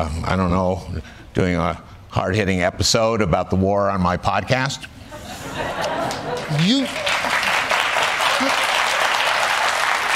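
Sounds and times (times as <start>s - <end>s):
speech: 0.0s - 5.0s, 6.5s - 7.1s
laughter: 5.1s - 9.2s
studio audience clapping: 6.0s - 10.1s.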